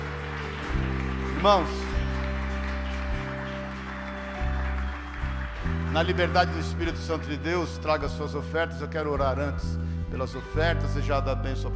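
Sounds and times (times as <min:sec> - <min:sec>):
audience applause: 0:00.0 - 0:07.9
sustained changing keyboard chords: 0:00.0 - 0:11.7
speech: 0:01.4 - 0:01.9, 0:06.0 - 0:11.7.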